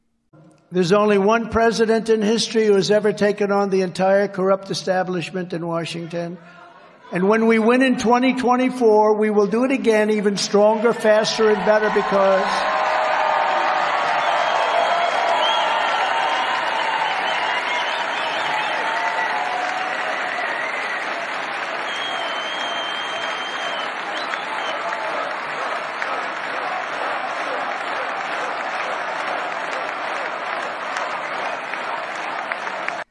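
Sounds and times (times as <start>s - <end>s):
speech: 0.7s - 12.8s
crowd applauding at a political rally at CPAC 2023: 10.9s - 33.0s.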